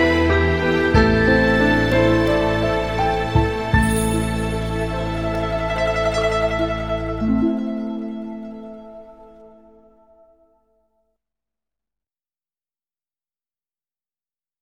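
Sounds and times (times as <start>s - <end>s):
music: 0.0s - 11.1s.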